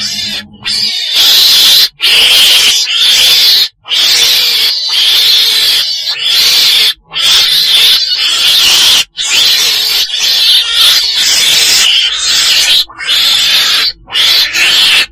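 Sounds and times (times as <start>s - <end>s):
weasel screeching: 0.0s - 15.1s.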